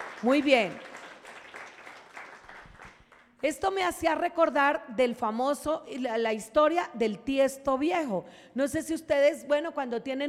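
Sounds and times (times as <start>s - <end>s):
audience applause: 0.0s - 3.2s
speech: 0.2s - 0.9s, 3.4s - 10.2s.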